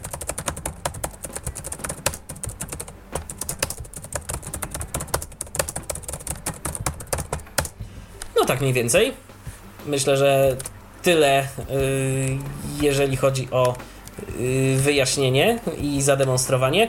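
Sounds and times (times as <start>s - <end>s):
typing on a computer keyboard: 0.0s - 7.7s
speech: 8.5s - 16.8s.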